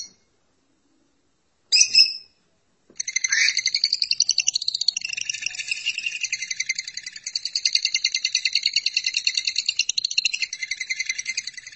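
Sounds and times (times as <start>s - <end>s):
lovebird chatter of trilling squeaks: 1.8s - 2.3s, 3.0s - 11.7s.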